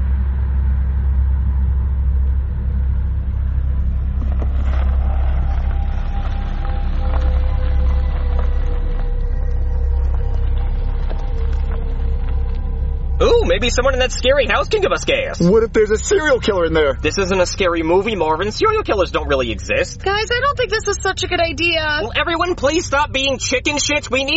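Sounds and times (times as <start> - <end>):
car engine pulling over onto a dirt road in Texas: 0.0 - 24.3
speech: 13.6 - 24.3.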